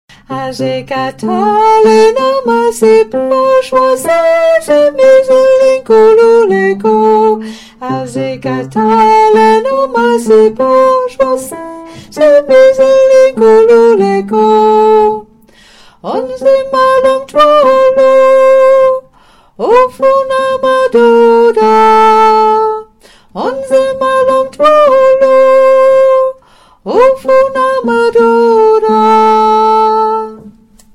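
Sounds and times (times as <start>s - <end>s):
tenor singing: 0.2s - 15.3s, 16.0s - 30.6s.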